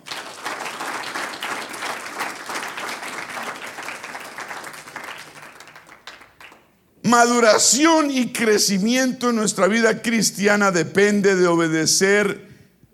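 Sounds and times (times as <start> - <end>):
audience applause: 0.0 - 6.8
speech: 7.1 - 12.5.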